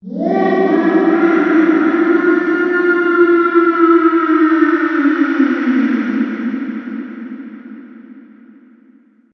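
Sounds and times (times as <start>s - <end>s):
ghostly sound: 0.0s - 8.6s.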